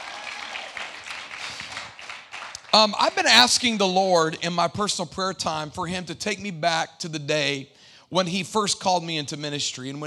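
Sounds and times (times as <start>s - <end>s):
audience applause: 0.0s - 3.5s
speech: 2.8s - 10.0s.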